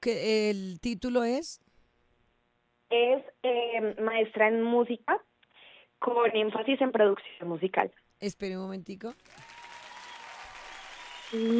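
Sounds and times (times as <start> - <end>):
speech: 0.0 - 1.7, 2.9 - 5.3, 6.0 - 9.4, 11.3 - 11.5
audience applauding: 9.1 - 11.5.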